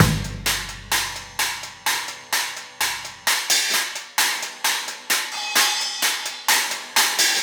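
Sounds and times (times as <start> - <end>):
kick drum: 0.0 - 2.0
cymbal: 0.0 - 7.4.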